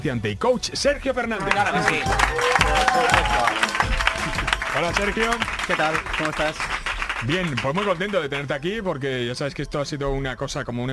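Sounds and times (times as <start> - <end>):
speech: 0.0 - 10.9
cheers and shouting voices: 1.3 - 5.7
audience applause: 1.4 - 8.5.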